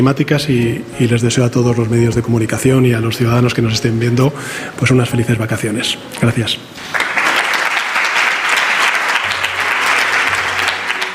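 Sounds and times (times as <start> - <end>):
speech: 0.0 - 7.1
ministers applauding: 6.8 - 11.1.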